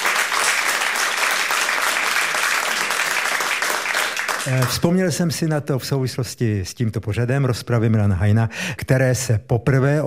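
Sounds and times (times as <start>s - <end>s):
audience applause: 0.0s - 4.8s
speech: 4.4s - 10.0s.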